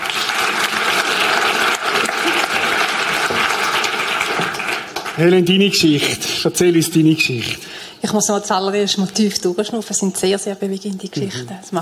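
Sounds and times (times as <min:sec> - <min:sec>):
audience applause: 0:00.0 - 0:06.0
speech: 0:05.2 - 0:11.8.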